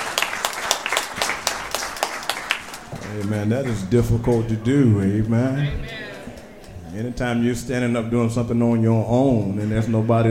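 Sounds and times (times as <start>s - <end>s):
audience hand clapping: 0.0s - 6.9s
speech: 3.1s - 6.0s, 7.0s - 10.2s.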